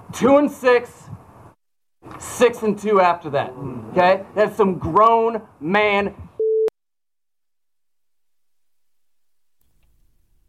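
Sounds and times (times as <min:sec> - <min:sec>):
speech: 0:00.2 - 0:01.2, 0:02.2 - 0:06.2
censorship bleep: 0:06.4 - 0:06.7.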